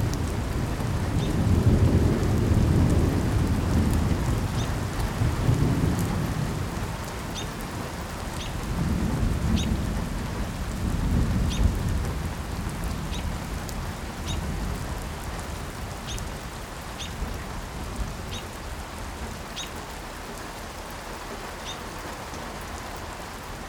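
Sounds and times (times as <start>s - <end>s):
thunder: 0.0s - 7.6s, 8.6s - 13.6s
birds: 4.5s - 4.7s, 7.3s - 7.6s, 8.3s - 8.6s, 9.6s - 9.8s, 14.2s - 14.5s, 16.0s - 16.3s, 17.0s - 17.2s, 18.3s - 18.6s, 19.4s - 23.0s.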